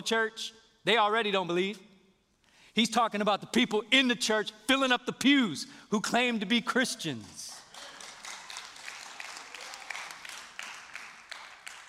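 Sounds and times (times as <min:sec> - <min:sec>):
speech: 0:00.0 - 0:01.9, 0:02.8 - 0:07.5
audience clapping: 0:07.2 - 0:11.8.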